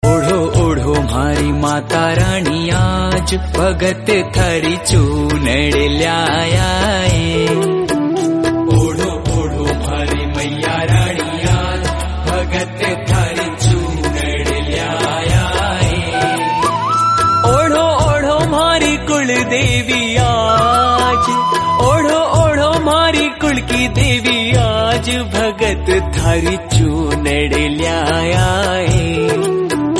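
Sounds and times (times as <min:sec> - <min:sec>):
Rajasthani bhajan devotional song ringtone: 0:00.0 - 0:29.9.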